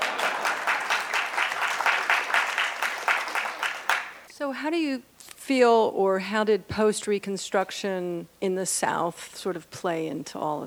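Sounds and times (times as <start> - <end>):
audience clapping: 0.0 - 4.3
speech: 4.5 - 10.6.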